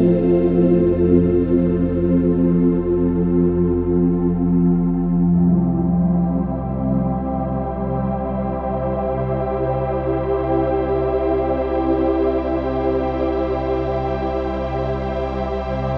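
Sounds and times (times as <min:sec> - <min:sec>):
deep relaxing music: 0:00.0 - 0:15.9.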